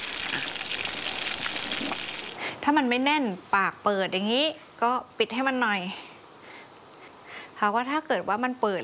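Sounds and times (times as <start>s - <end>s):
spring rolls frying in hot oil in a pan: 0.0s - 5.0s
speech: 2.6s - 6.1s, 7.6s - 8.8s.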